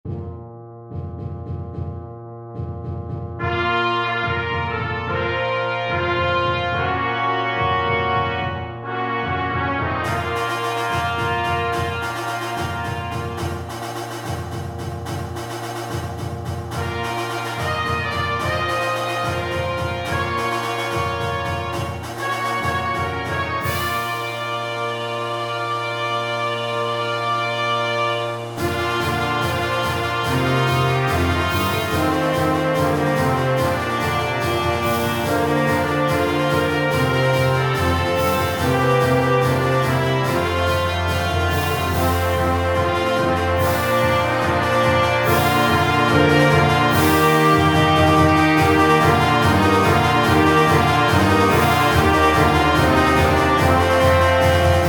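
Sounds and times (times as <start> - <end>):
harvest prep fanfare: 3.4 - 54.8.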